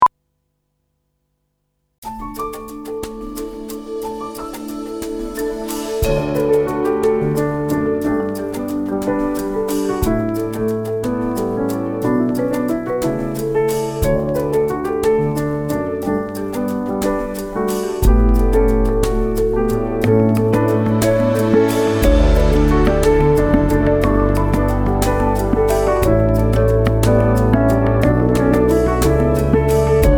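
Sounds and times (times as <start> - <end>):
piano playing at medium tempo: 2.0 - 30.1.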